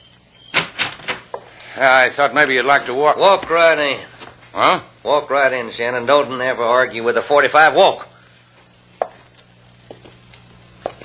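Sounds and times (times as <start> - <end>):
door being opened: 0.4 - 1.4
speech: 1.8 - 8.1.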